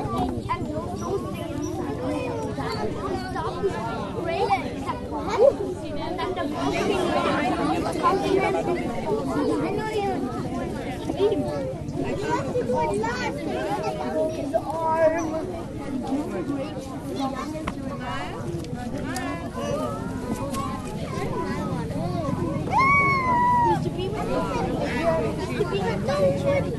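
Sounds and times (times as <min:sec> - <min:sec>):
kindergarten open house soundscape: 0:00.0 - 0:26.7.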